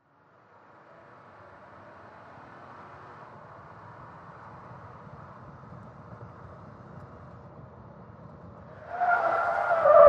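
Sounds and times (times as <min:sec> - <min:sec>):
SUV truck skidding in a 180 turn: 0:08.6 - 0:10.0.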